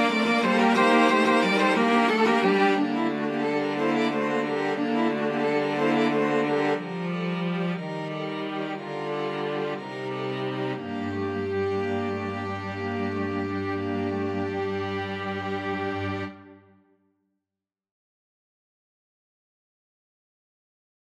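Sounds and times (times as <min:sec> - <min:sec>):
string quartet: 0:00.0 - 0:16.8.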